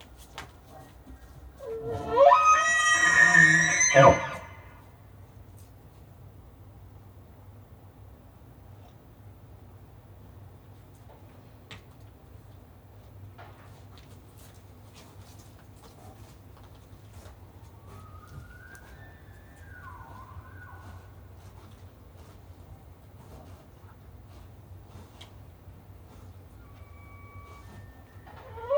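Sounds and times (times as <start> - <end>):
bull elk bugling: 1.6 - 4.8, 17.2 - 22.2, 24.9 - 28.7.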